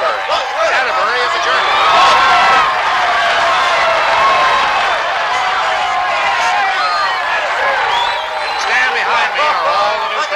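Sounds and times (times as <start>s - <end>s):
crowd cheering at finish line: 0.0s - 10.3s
whoops: 1.6s - 9.5s.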